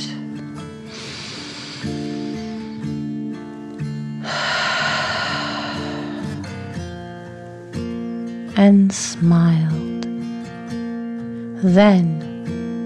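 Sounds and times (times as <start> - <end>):
gentle sustained music: 0.0 - 12.8
slow deep calming breaths: 0.8 - 2.9, 4.2 - 7.1
speech: 8.6 - 9.9, 11.6 - 12.3.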